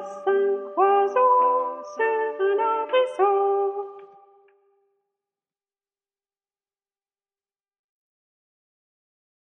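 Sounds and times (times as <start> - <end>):
sopranos singing: 0.0 - 4.2.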